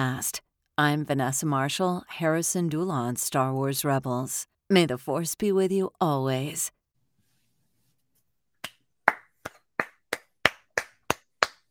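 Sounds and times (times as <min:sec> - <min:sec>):
speech: 0:00.0 - 0:06.8
single person clapping hands: 0:08.6 - 0:11.7.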